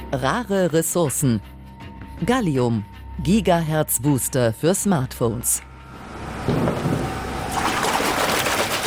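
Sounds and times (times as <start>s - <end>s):
speech: 0.1s - 1.6s, 2.2s - 5.7s, 6.5s - 7.1s
crystal blocks being dipped into water baths: 6.7s - 8.8s.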